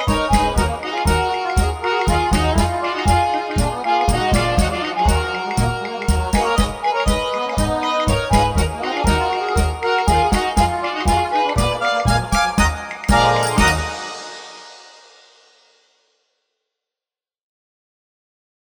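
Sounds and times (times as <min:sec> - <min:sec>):
tango music: 0:00.0 - 0:14.9.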